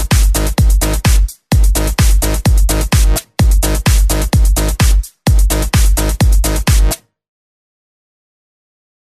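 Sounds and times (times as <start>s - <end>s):
hard noise club mix: 0.0s - 7.0s.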